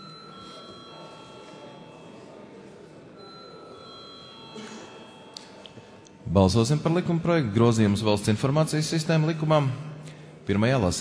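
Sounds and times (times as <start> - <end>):
parliament chamber bell ringing: 0.0 - 2.5, 3.2 - 6.0
speech: 6.3 - 9.9, 10.5 - 10.9.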